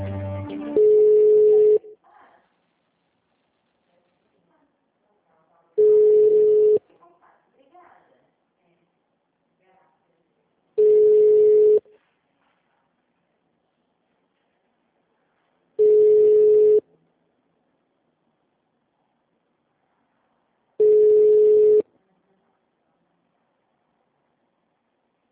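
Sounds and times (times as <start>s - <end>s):
busy telephone line tones during a call transfer: 0.8s - 1.9s, 5.8s - 6.8s, 10.8s - 11.8s, 15.8s - 16.9s, 20.8s - 21.9s.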